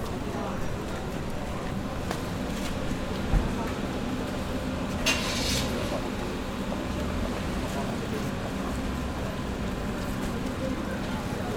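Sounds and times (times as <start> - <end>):
crowd murmur at Nishiki Market in Kyoto: 0.0 - 11.5
clatters and scrapes: 5.0 - 6.0.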